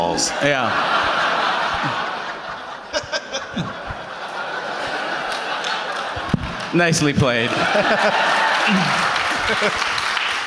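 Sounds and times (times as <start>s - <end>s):
laughter: 0.0s - 10.4s
speech: 0.2s - 1.1s, 6.8s - 9.9s
audience applause: 4.7s - 10.4s.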